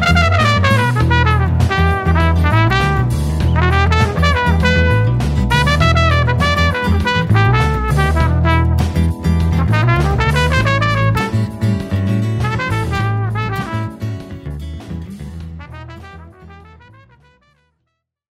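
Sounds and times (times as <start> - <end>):
solo trumpet playing blues funk in E: 0.0 - 8.9, 9.6 - 11.6, 12.4 - 14.1, 15.6 - 17.6.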